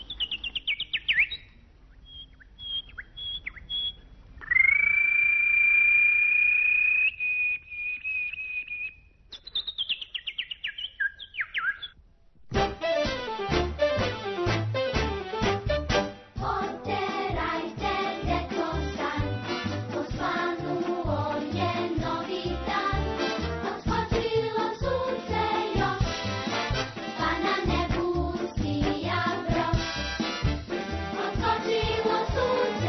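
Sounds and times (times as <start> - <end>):
birds chirping: 0.0 - 12.0
busy music: 12.5 - 32.8.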